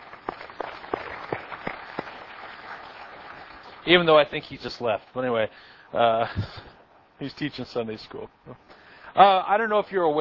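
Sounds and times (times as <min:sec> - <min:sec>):
church congregation round of applause: 0:00.0 - 0:04.2
speech: 0:03.9 - 0:10.1.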